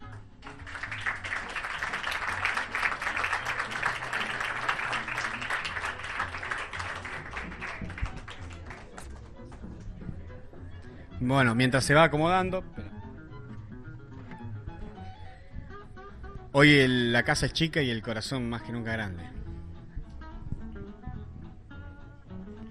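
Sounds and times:
audience applause: 0.4 - 9.1
speech: 11.2 - 12.8, 16.6 - 19.4.

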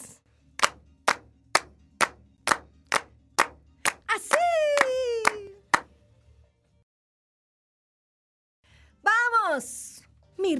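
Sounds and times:
rhythmic hand clapping: 0.6 - 5.9
speech: 9.6 - 9.8.

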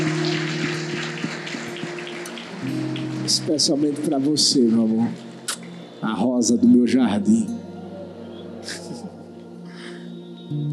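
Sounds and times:
applause: 0.0 - 5.9
speech: 3.3 - 5.3, 6.0 - 7.6
laughter: 8.4 - 9.3.

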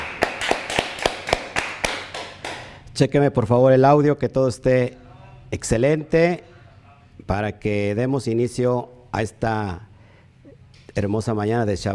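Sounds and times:
audience applause: 0.0 - 2.6
speech: 3.0 - 6.5, 7.2 - 9.9, 11.0 - 11.9.

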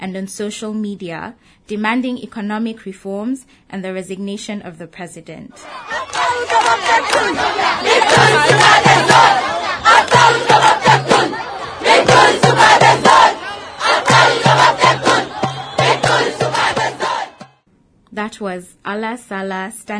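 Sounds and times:
speech: 0.0 - 10.6, 18.2 - 19.9
large protest crowd chanting: 5.5 - 17.6.

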